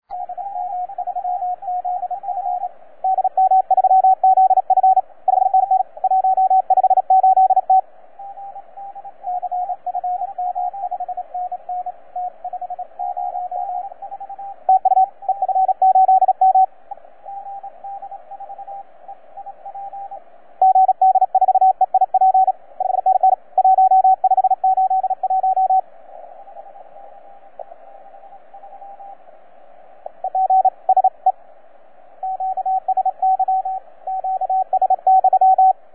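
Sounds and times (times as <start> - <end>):
CW Morse code beeps: 0.2 - 16.7, 19.4 - 25.8, 30.2 - 31.3, 32.2 - 35.7.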